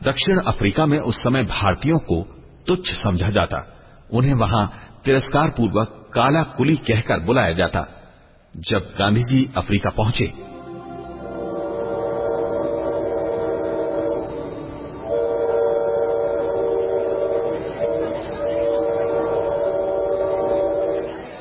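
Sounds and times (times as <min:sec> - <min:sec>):
speech: 0:00.0 - 0:10.5
train bound for Pretoria in South Africa rumbling: 0:10.4 - 0:21.3.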